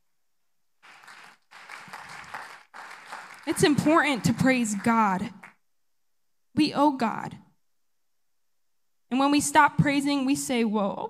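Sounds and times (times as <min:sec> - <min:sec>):
audience clapping hands: 0:00.8 - 0:05.6
speech: 0:03.4 - 0:05.4, 0:06.6 - 0:07.4, 0:09.1 - 0:11.0.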